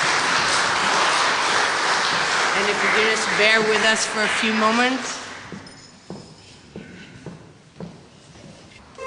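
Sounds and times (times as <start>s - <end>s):
audience applause: 0.0s - 5.6s
speech: 2.6s - 5.2s.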